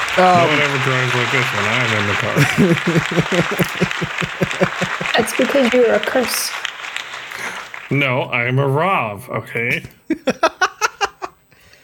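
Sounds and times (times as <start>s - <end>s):
clapping: 0.0s - 8.4s
laughter: 0.2s - 6.1s, 8.8s - 11.3s
speech: 0.2s - 6.7s, 7.9s - 10.7s.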